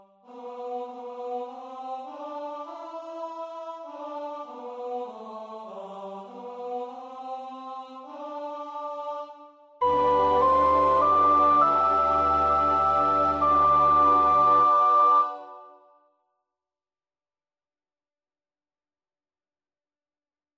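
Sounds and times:
soprano practising a choir part: 0.2 - 15.9.

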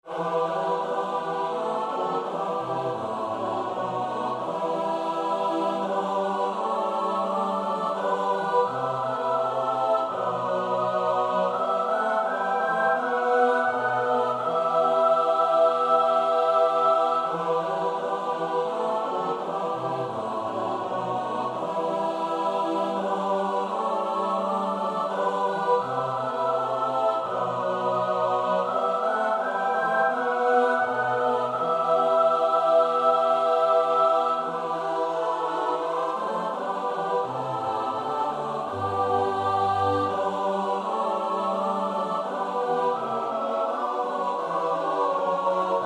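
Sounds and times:
soprano alto tenor bass voices: 0.0 - 45.8.

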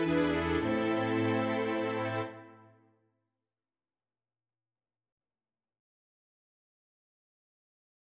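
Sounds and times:
soprano alto tenor bass voices: 0.0 - 2.6.

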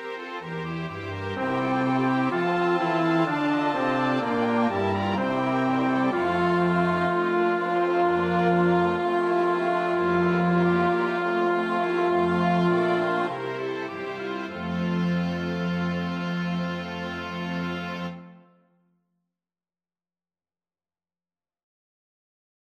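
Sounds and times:
bass: 0.5 - 18.2.

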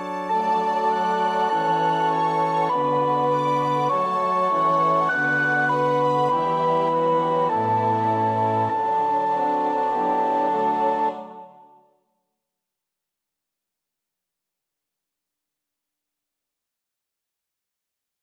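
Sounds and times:
soprano practising a choir part: 0.0 - 11.9.

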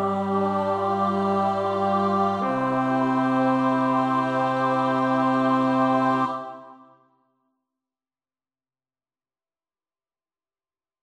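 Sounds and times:
bass choir part practice: 0.0 - 6.9.

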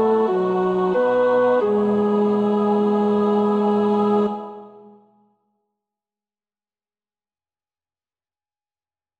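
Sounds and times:
tenor singing: 0.0 - 5.0.

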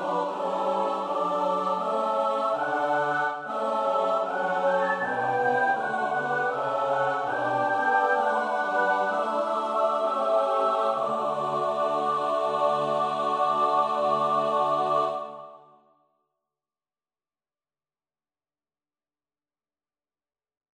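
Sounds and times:
soprano alto tenor bass voices: 0.0 - 15.4.

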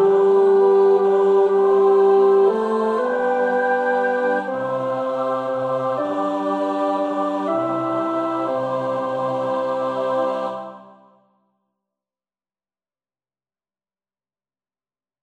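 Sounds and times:
tenor voice singing a carol verse: 0.0 - 11.0.

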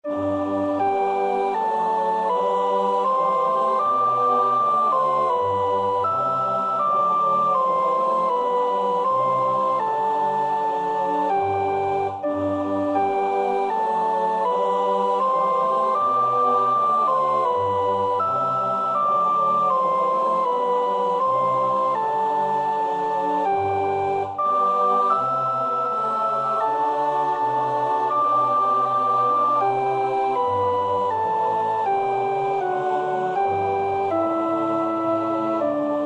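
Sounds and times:
soprano practising a choir part: 0.0 - 36.0.

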